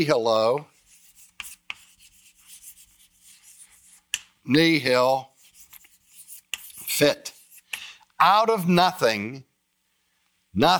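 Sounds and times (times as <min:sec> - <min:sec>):
speech: 0:00.0 - 0:00.7, 0:04.5 - 0:05.3, 0:07.0 - 0:07.3, 0:08.2 - 0:09.5, 0:10.6 - 0:10.7
scratchy writing on a board: 0:00.6 - 0:04.4, 0:05.3 - 0:07.7.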